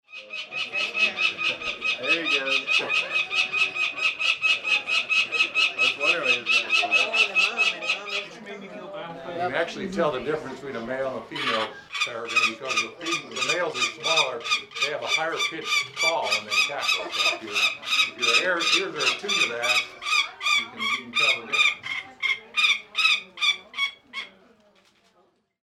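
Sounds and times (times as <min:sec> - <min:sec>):
falcon screeching: 0:00.2 - 0:08.3, 0:11.3 - 0:24.4
laughter: 0:00.5 - 0:22.6.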